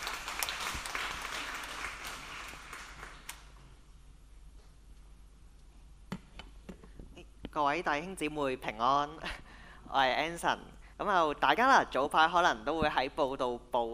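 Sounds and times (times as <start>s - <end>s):
audience applauding: 0.0s - 3.5s
speech: 7.6s - 13.9s.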